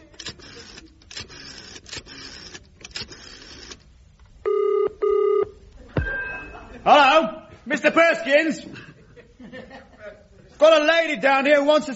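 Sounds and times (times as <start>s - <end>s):
telephone ringing: 4.4s - 5.6s
laughter: 5.8s - 7.0s, 8.6s - 10.5s
speech: 7.7s - 8.8s, 10.6s - 11.9s.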